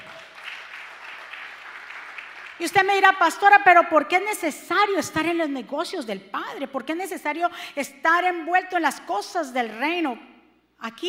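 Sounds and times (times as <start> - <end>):
audience applauding: 0.0 - 2.6
speech: 2.6 - 11.0.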